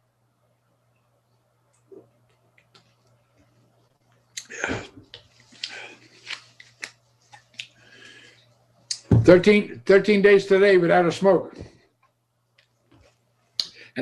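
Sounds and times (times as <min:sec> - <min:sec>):
low steady hum: 0:00.0 - 0:14.0
person sipping grapefruit water: 0:04.4 - 0:05.0
speech: 0:09.3 - 0:11.7.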